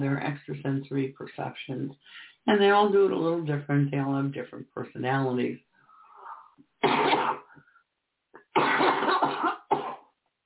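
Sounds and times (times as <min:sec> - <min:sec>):
speech: 0:00.0 - 0:05.7, 0:06.8 - 0:07.7, 0:08.6 - 0:09.8
person clearing throat: 0:06.8 - 0:07.5, 0:08.4 - 0:10.1.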